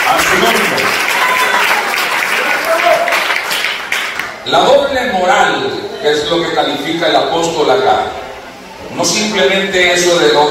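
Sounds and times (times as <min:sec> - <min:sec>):
faint cheers: 0:00.0 - 0:03.4
audience applause: 0:00.0 - 0:04.4
speech: 0:04.5 - 0:08.2, 0:08.9 - 0:10.5.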